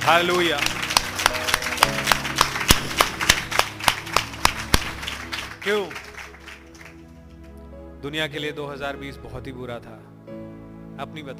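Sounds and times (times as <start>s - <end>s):
church congregation clapping in unison at a New Year's Day service: 0.0s - 7.6s
speech: 0.1s - 0.8s, 5.6s - 6.0s, 8.0s - 11.3s.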